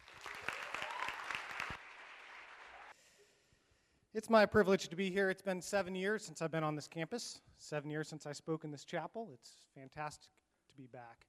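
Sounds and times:
chapel audience applause welcoming a speaker: 0:00.0 - 0:02.9
speech: 0:04.2 - 0:11.2.

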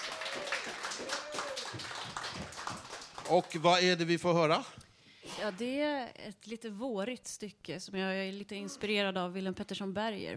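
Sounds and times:
audience applause: 0:00.0 - 0:03.9
speech: 0:03.3 - 0:04.8, 0:05.4 - 0:10.3.

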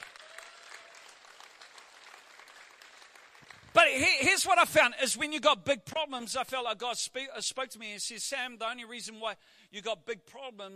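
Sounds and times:
audience clapping: 0:00.0 - 0:04.3
speech: 0:03.8 - 0:10.7.

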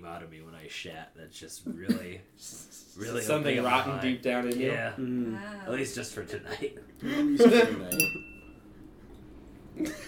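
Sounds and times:
speech: 0:00.1 - 0:08.3
bell ringing for a break: 0:07.9 - 0:08.6.

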